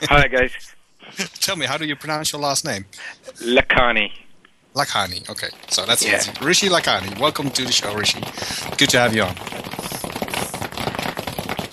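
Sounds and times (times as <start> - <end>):
speech: 0.0 - 9.8
round of applause, many hands clapping: 5.5 - 11.7.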